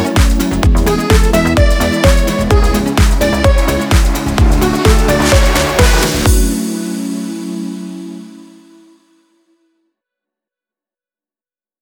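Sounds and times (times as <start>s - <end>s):
accordion: 0.0s - 8.9s
deep house music: 0.0s - 9.0s.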